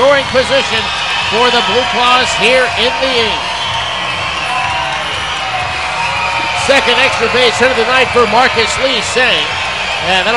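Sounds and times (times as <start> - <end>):
baseball crowd cheering: 0.0 - 10.3
speech: 0.2 - 3.5, 6.7 - 10.3.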